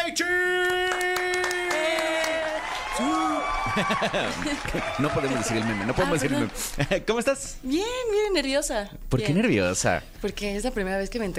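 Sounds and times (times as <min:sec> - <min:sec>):
speech: 0:00.1 - 0:00.6, 0:03.8 - 0:11.3
audience applause: 0:00.6 - 0:07.0
whoops and cheers: 0:00.8 - 0:06.6
laughter: 0:03.5 - 0:07.3.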